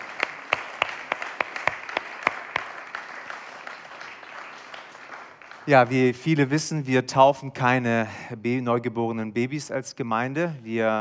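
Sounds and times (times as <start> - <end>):
audience applauding: 0.0 - 5.9
speech: 5.7 - 10.9.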